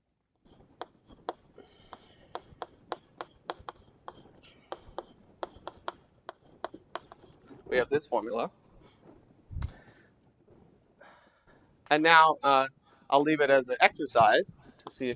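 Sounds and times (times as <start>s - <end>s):
pen strokes handwriting a formula: 0.4s - 7.9s
speech: 7.7s - 8.6s, 11.9s - 15.1s.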